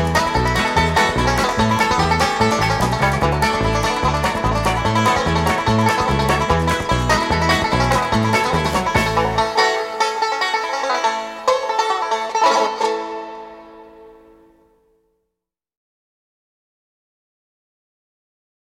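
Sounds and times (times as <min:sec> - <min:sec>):
banjos playing: 0:00.0 - 0:14.9.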